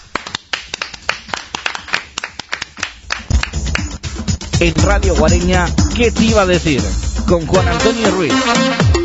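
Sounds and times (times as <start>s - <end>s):
applause: 0.0s - 4.0s
speech: 4.6s - 8.9s.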